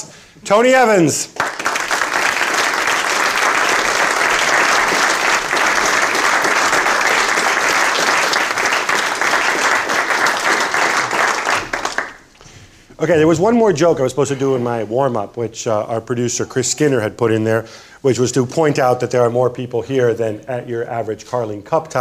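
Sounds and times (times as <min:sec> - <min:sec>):
speech: 0:00.5 - 0:01.5, 0:13.0 - 0:21.9
audience applause: 0:01.3 - 0:12.3.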